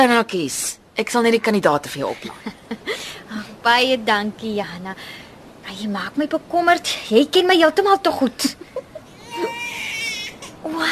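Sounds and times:
speech: 0:00.0 - 0:08.8, 0:10.6 - 0:10.9
laughter: 0:02.1 - 0:03.0
baby crying: 0:09.1 - 0:10.9.

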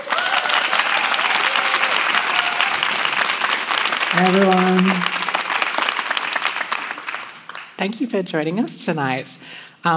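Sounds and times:
audience clapping at a book event: 0:00.0 - 0:07.9
speech: 0:04.1 - 0:05.2, 0:07.8 - 0:09.9.

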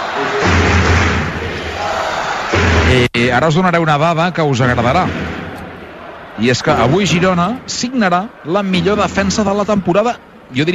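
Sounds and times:
basketball fans chanting from the stands of Fontajau: 0:00.0 - 0:02.9, 0:05.4 - 0:09.7
speech: 0:02.9 - 0:05.4, 0:06.4 - 0:10.7.

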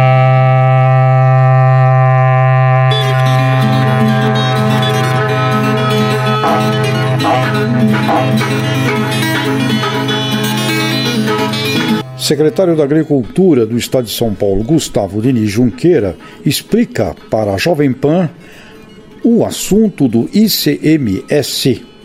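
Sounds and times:
berrante cattle horn blowing a long low note: 0:00.0 - 0:12.4
speech: 0:12.3 - 0:18.6, 0:19.2 - 0:21.9.

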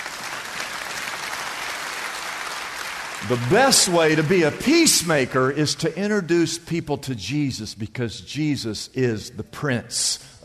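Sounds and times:
audience applause: 0:00.0 - 0:05.2
speech: 0:03.2 - 0:10.4.

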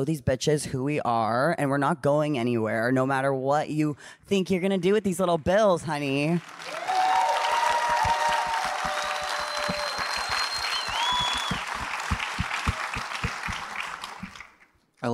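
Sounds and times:
speech: 0:00.0 - 0:06.8
audience clapping: 0:06.3 - 0:14.7
high whistles: 0:07.3 - 0:14.5.

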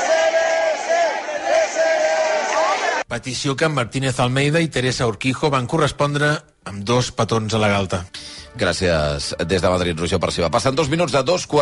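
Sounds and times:
crowd shouting cheers for newlyweds outside the church: 0:00.0 - 0:03.0
speech: 0:03.1 - 0:11.6.

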